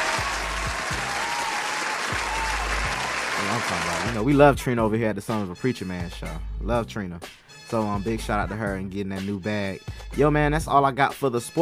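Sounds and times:
clapping: 0:00.0 - 0:04.2
speech: 0:03.5 - 0:11.5.

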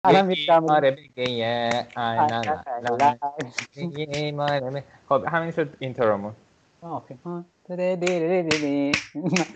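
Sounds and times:
speech: 0:00.0 - 0:09.5
person humming: 0:00.1 - 0:06.3, 0:07.8 - 0:09.5
finger snapping: 0:01.2 - 0:04.6, 0:08.1 - 0:09.5.

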